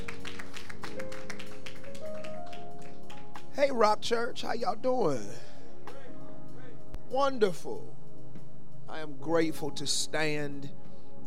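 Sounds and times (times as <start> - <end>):
audience clapping: 0.0 - 3.5
speech: 3.6 - 5.5, 7.1 - 8.0, 8.9 - 10.8.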